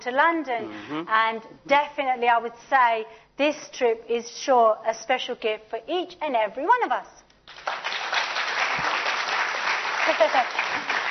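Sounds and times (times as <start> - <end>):
speech: 0.0 - 7.2, 10.1 - 10.6
audience clapping: 7.4 - 11.1.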